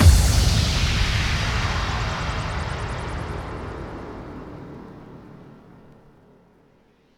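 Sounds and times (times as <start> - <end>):
bass drum kick with reverb: 0.0 - 4.0.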